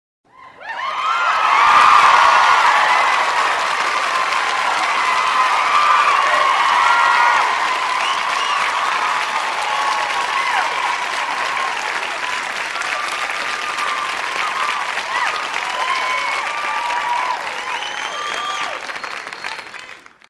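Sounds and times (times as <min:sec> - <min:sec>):
crowd applause: 0:00.6 - 0:20.2.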